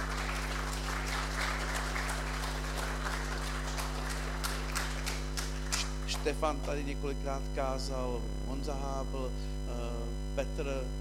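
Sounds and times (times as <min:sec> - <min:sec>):
audience applause: 0:00.0 - 0:06.8
speech: 0:06.2 - 0:10.9.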